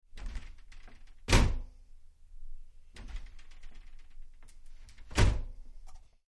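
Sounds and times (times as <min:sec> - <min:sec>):
glass shower cubicle door opening and closing: 0:00.1 - 0:01.7, 0:02.9 - 0:05.6.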